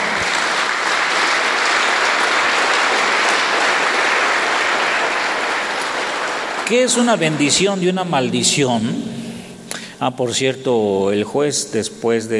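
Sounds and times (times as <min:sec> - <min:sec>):
audience applauding loudly: 0:00.0 - 0:08.8
speech: 0:06.7 - 0:09.3, 0:10.0 - 0:12.3.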